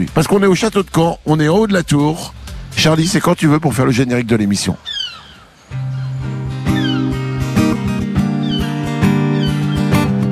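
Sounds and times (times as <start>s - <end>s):
speech: 0.0s - 5.0s
seagulls calling: 4.6s - 10.2s.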